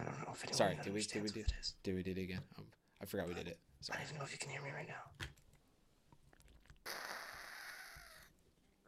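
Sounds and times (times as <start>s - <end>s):
speech: 0.4s - 5.3s
person drinking water gulping: 6.1s - 7.1s.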